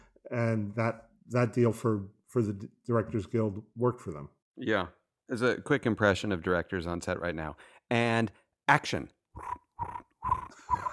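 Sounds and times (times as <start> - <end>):
speech: 0.3 - 10.9
person whistling in imitation of a cricket chirping: 10.2 - 10.9.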